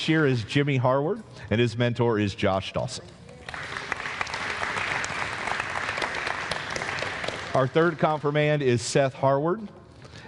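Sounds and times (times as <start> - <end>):
speech: 0.0 - 3.6, 7.6 - 10.2
audience applause: 3.4 - 8.2.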